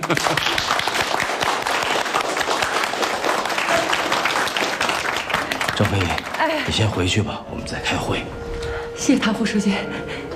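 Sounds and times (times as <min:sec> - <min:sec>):
meeting attendees applauding: 0:00.0 - 0:07.2
speech: 0:00.1 - 0:00.6, 0:06.0 - 0:08.4, 0:09.0 - 0:10.3.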